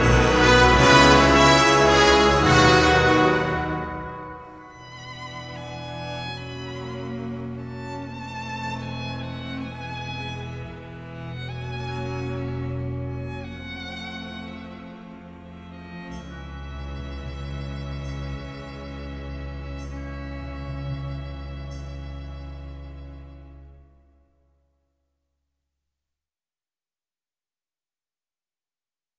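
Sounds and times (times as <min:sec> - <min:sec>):
noble horns: 0:00.0 - 0:04.8.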